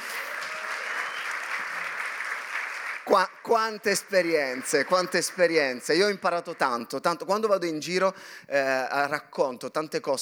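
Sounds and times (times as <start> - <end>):
audience applause for pastors: 0.0 - 3.4, 4.2 - 6.8
speech: 3.1 - 10.1.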